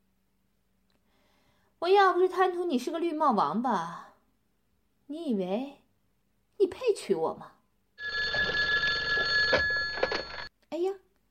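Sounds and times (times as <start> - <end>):
speech: 1.8 - 4.1, 5.1 - 5.8, 6.6 - 7.5, 10.7 - 11.0
telephone ringing: 8.0 - 10.5.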